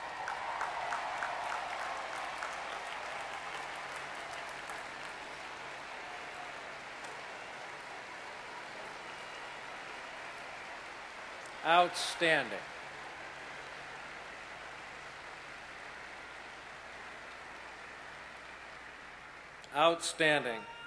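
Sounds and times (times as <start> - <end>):
large crowd applauding: 0.0 - 19.6
speech: 11.6 - 12.7, 19.8 - 20.8.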